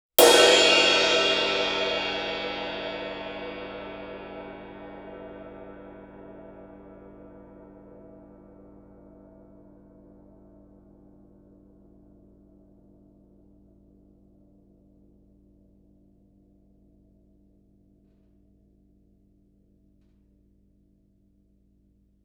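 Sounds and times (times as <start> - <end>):
suspended ride cymbal struck fortissimo with stick shoulder: 0.2 - 8.6.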